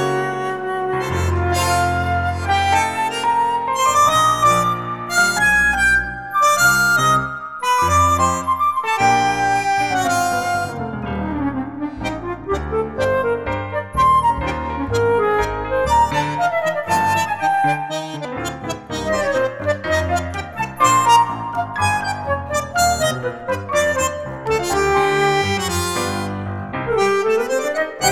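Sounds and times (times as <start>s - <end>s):
flute in G minor: 0.0s - 18.3s, 18.9s - 28.1s.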